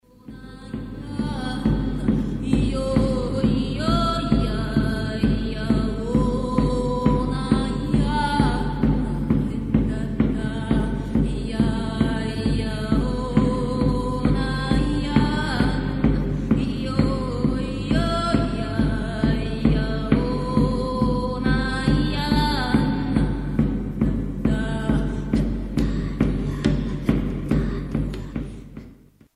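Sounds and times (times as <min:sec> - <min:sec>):
ritual song: 0:00.0 - 0:29.3.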